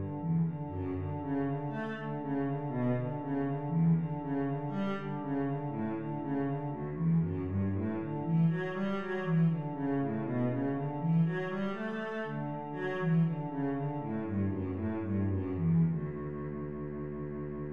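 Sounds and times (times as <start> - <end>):
cello etude: 0.0 - 17.7.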